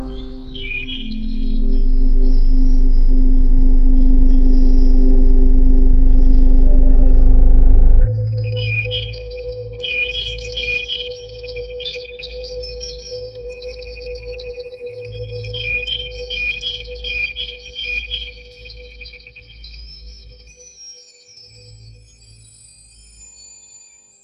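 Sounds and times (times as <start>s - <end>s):
nature ambience: 0.0s - 24.2s.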